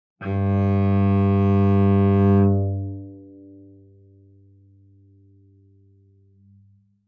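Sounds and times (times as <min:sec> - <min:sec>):
cello bowed fortissimo on the G string G2: 0:00.2 - 0:05.6.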